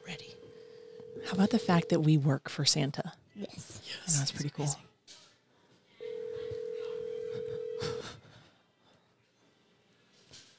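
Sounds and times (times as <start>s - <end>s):
telephone line tone: 0.0s - 2.2s, 6.0s - 8.0s
speech: 1.2s - 4.9s.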